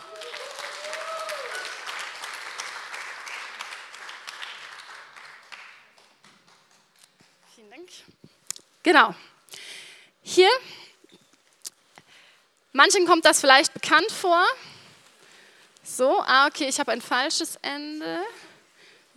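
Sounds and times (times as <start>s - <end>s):
audience applause: 0.0s - 7.5s
speech: 8.8s - 9.2s, 10.4s - 10.8s, 12.8s - 14.7s, 16.0s - 18.4s.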